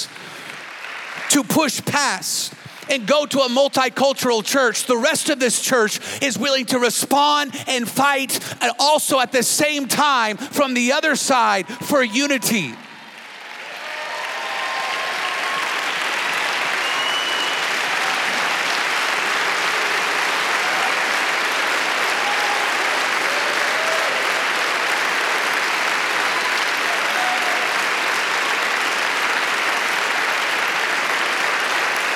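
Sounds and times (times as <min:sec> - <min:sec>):
large audience clapping: 0:00.0 - 0:03.5, 0:11.4 - 0:32.1
speech: 0:01.4 - 0:12.8
faint cheers and voices: 0:11.7 - 0:18.8, 0:26.2 - 0:27.9.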